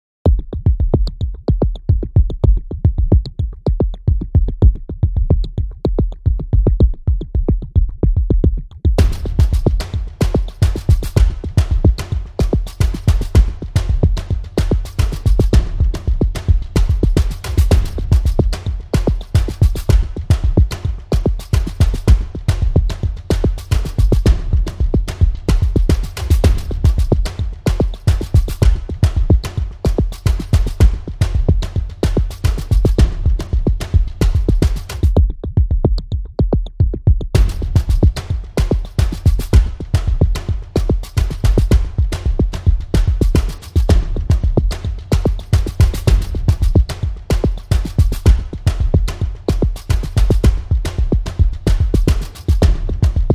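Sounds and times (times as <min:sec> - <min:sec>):
drums: 0:00.2 - 0:53.3.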